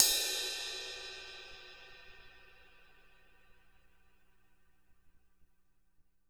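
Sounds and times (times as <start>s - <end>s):
crash cymbal tip hit: 0.0s - 3.2s.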